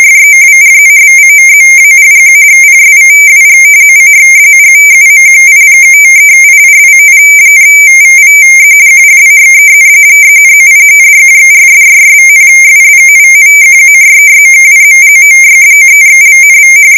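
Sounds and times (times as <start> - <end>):
AFSK radio teletype data tones at 22 ms per bit: 0.0 - 16.9.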